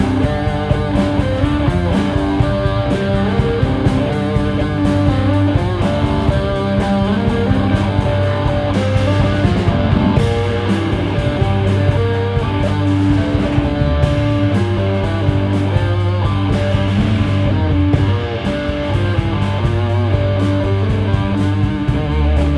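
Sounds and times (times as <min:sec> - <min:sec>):
noisy vibrato riff: 0:00.0 - 0:22.5.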